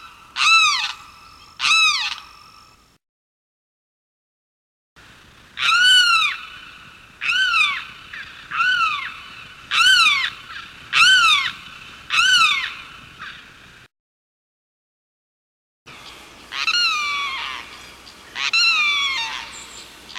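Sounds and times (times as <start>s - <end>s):
limpkin giving loud wailing calls: 0.4s - 2.4s, 7.2s - 13.4s, 16.5s - 20.1s.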